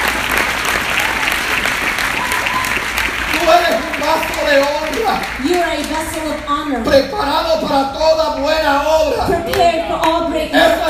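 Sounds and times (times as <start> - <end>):
church congregation clapping during a bilingual Spanish-English worship service: 0.0 - 6.5, 8.1 - 10.2
speech: 4.5 - 10.8.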